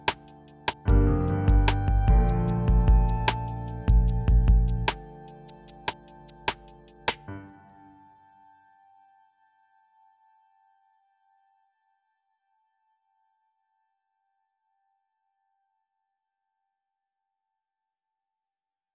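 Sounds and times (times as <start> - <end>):
smooth groove music: 0.0 - 7.3.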